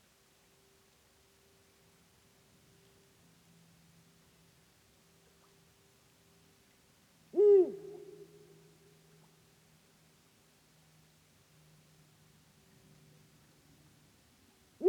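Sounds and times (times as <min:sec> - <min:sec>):
Bubo bubo eagle owl: 0:07.3 - 0:08.5.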